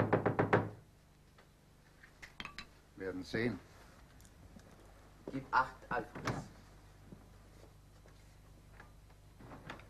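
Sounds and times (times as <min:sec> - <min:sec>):
knocking on a door: 0:00.0 - 0:00.8
speech: 0:03.0 - 0:03.7, 0:05.3 - 0:06.5.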